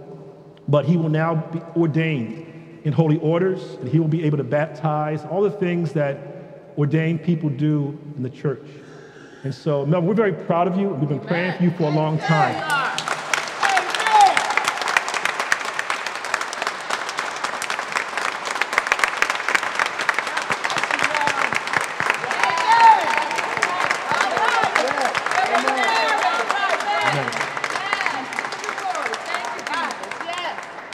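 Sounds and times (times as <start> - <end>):
speech: 0.7 - 12.8
church audience applauding: 12.3 - 30.9.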